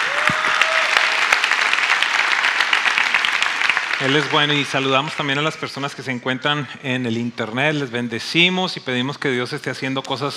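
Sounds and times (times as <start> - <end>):
audience applause: 0.0 - 5.6
speech: 4.0 - 10.3.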